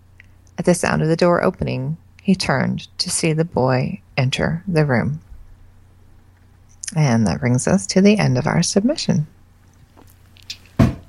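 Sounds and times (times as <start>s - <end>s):
speech: 0.7s - 5.3s, 6.9s - 9.4s
chair popping: 10.0s - 11.0s.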